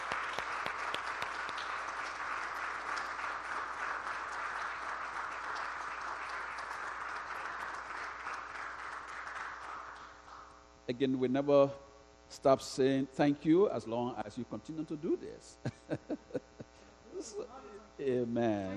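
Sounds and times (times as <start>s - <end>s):
audience applause: 0.0s - 10.5s
speech: 10.9s - 16.4s, 17.2s - 18.7s
laughter: 15.6s - 17.8s.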